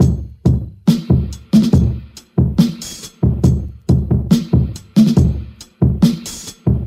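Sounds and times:
boom bap drum loops: 0.0 - 6.8.

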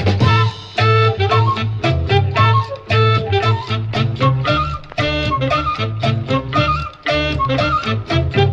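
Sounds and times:
phonk horn loops: 0.2 - 8.5.

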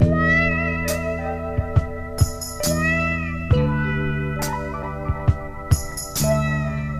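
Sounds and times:
guitar loops: 0.0 - 6.9.

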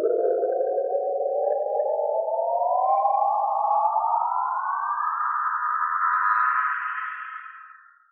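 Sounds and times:
spaceship sound: 0.2 - 7.9
electronic beeps: 3.4 - 7.9.

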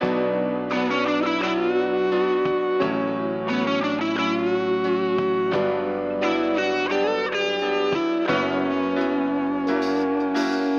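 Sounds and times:
guitar: 0.0 - 10.7.

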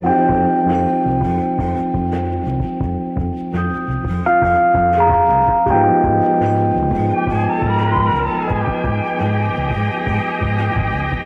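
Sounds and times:
jazz keyboard loops: 0.0 - 11.2.

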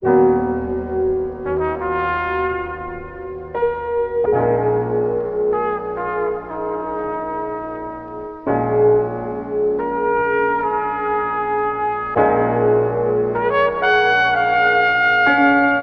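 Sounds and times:
sad horns: 0.1 - 15.8.

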